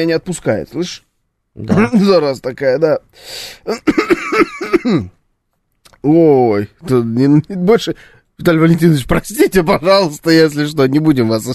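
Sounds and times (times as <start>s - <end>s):
speech: 0.0s - 5.2s, 6.0s - 11.5s
person clearing throat and coughing: 3.7s - 5.2s.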